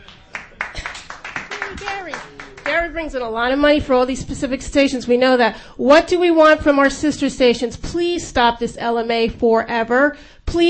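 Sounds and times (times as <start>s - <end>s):
radio station colleagues clapping: 0.0s - 2.9s
speech: 1.9s - 10.6s.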